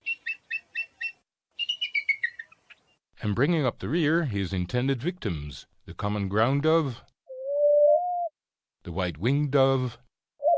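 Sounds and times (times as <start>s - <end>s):
bald eagle chirping: 0.0s - 3.0s, 7.3s - 8.3s, 10.4s - 10.5s
speech: 3.2s - 7.1s, 8.8s - 10.0s.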